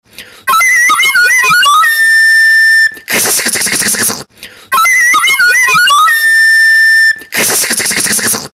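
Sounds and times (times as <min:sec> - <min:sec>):
flute solo: 0:00.5 - 0:03.8, 0:04.7 - 0:07.5.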